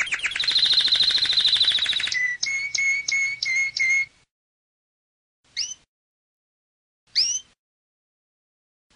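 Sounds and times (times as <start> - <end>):
canary song with buzzy tour, whistled notes and trills: 0.0 - 4.2, 5.5 - 5.9, 7.2 - 7.6.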